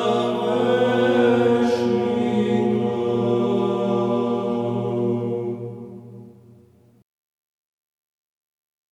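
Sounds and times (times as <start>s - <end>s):
Orthodox troparion chant in tone two: 0.0s - 6.8s.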